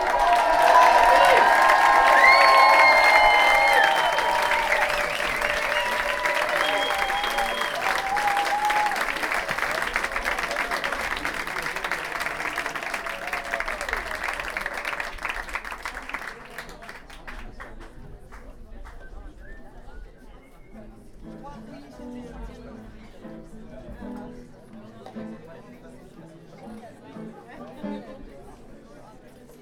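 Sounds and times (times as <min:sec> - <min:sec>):
cheering voices: 0:00.0 - 0:16.5
crowd applauding: 0:00.0 - 0:18.5
high whistles: 0:02.0 - 0:09.0.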